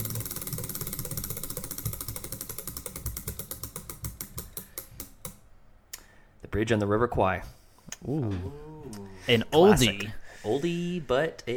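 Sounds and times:
spinning prize wheel clicking: 0.0 - 5.4
speech: 6.5 - 11.5.

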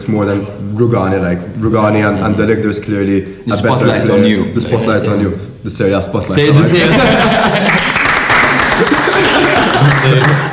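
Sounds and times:
speech: 0.0 - 8.0, 10.0 - 10.5
laughter: 6.5 - 10.5
applause: 7.6 - 10.5.

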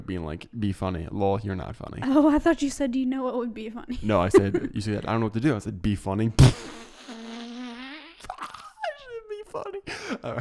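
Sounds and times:
speech: 0.1 - 6.9, 9.5 - 10.4
fart noise made with the mouth: 6.4 - 8.8.

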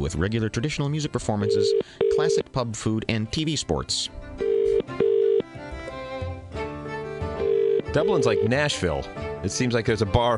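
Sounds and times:
speech: 0.0 - 5.1, 7.9 - 10.3
telephone ringing tone: 1.4 - 2.4, 4.4 - 5.4, 7.4 - 8.5.

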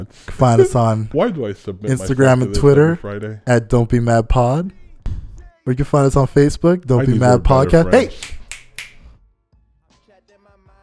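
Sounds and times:
speech: 0.0 - 4.8, 5.6 - 8.4
finger snapping: 8.1 - 9.1.

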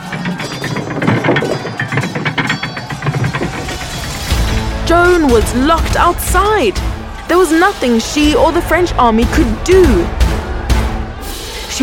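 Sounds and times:
ratcheting gears: 0.0 - 4.8
drawbridge being raised: 0.0 - 11.4
speech: 4.9 - 10.2.

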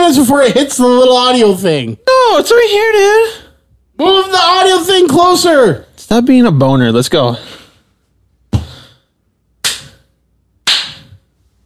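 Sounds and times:
speech: 0.1 - 3.4, 4.0 - 7.5
single hand clap for audio sync: 9.6 - 10.0, 10.6 - 11.2.

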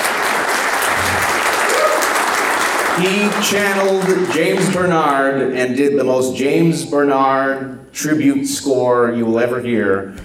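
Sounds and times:
audience round of applause: 0.0 - 4.9
speech: 3.0 - 10.2.

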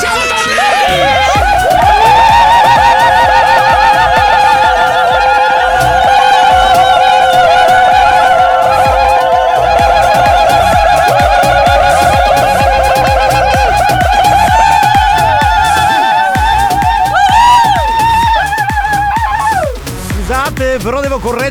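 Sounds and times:
group war-whoop shout: 0.0 - 20.0
laughter: 0.0 - 20.6.

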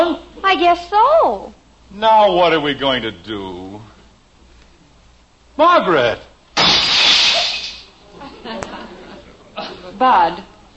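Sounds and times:
speech: 0.1 - 3.9, 5.6 - 6.3, 9.9 - 10.7
scattered tinkling glass pieces: 6.6 - 7.9
window glass shattering: 6.6 - 7.9
laughter: 8.0 - 10.0.

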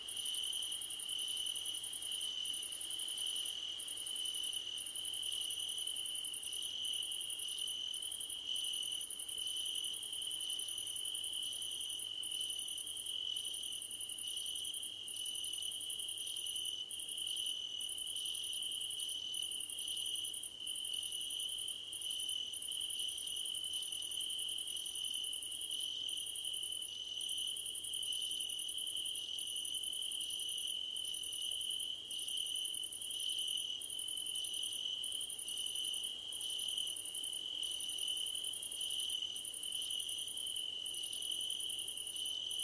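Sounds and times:
crickets chirping in a dense night chorus: 0.0 - 42.6.

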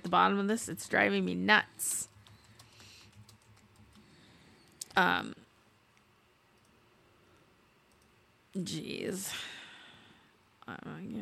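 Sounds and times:
speech: 0.1 - 2.1, 5.0 - 5.4, 8.6 - 9.6, 10.7 - 11.2
typing a search on a computer keyboard: 1.8 - 5.0, 7.9 - 8.1.

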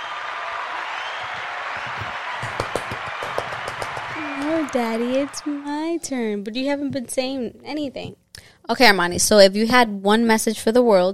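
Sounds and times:
round of applause: 0.0 - 6.0
speech: 4.4 - 11.1.

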